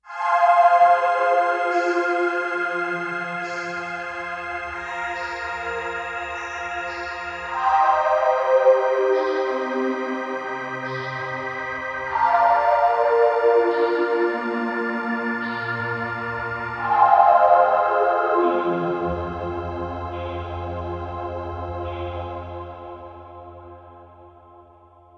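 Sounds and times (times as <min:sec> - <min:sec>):
Kawai K5000S synthesizer: 0:00.0 - 0:25.1.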